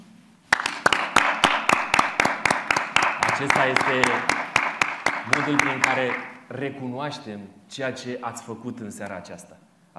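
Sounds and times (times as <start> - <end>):
applause: 0.5 - 6.4
speech: 3.4 - 4.4, 5.3 - 9.9.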